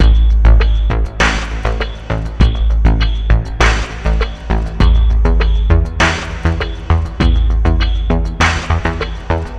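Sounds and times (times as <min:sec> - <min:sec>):
future ambient music: 0:00.0 - 0:09.5.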